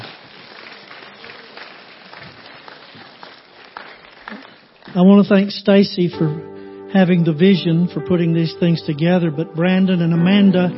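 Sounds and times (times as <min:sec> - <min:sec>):
audience clapping: 0:00.0 - 0:05.5
speech: 0:05.0 - 0:10.7.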